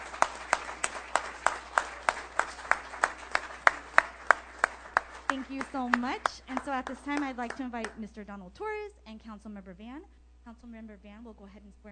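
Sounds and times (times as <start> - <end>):
rhythmic clapping: 0.0 - 8.1
speech: 5.3 - 11.8.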